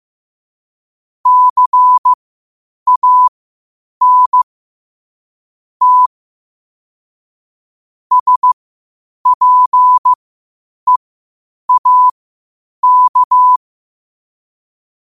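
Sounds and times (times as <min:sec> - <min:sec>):
morse code at 5 wpm: 0:01.3 - 0:02.2, 0:02.9 - 0:03.3, 0:04.0 - 0:04.4, 0:05.8 - 0:06.1, 0:08.1 - 0:08.6, 0:09.2 - 0:10.2, 0:11.7 - 0:12.2, 0:12.8 - 0:13.6.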